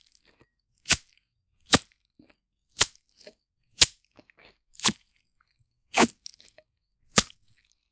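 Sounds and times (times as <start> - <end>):
slashing a ripe watermelon: 0.9 - 1.1, 4.8 - 5.0, 5.9 - 6.2, 7.1 - 7.4.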